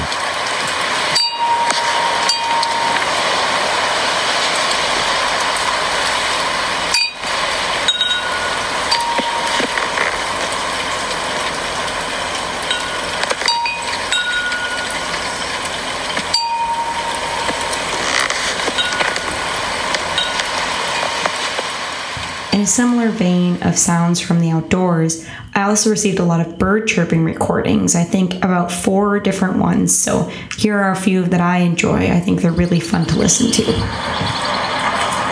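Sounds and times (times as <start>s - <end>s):
rain: 0.0s - 23.6s, 34.2s - 35.3s
wind chimes outside a window: 1.1s - 4.9s, 7.0s - 10.4s, 12.6s - 15.1s, 16.3s - 21.3s, 32.5s - 34.4s
speech: 22.7s - 34.7s.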